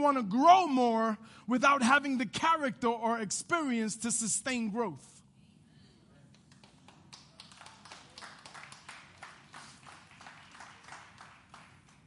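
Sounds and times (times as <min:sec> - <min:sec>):
speech: 0:00.0 - 0:05.2
nervous clapping from the audience: 0:06.3 - 0:12.0.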